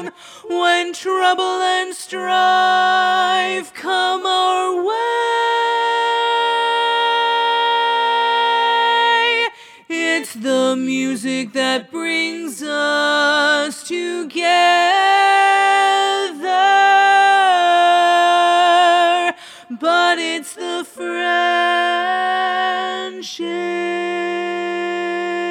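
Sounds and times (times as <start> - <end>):
baritone learning track vocal part: 0.0 - 25.5.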